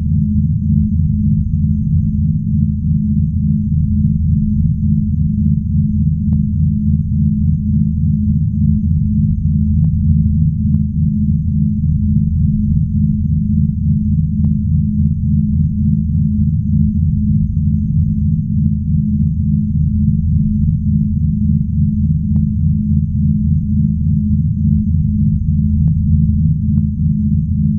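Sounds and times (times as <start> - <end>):
spaceship drone hum: 0.0 - 27.7.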